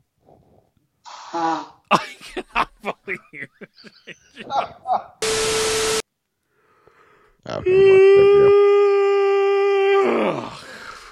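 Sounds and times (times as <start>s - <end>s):
speech: 1.3s - 2.4s, 3.1s - 6.0s
laughter: 1.9s - 5.1s
person yawning: 7.5s - 11.1s.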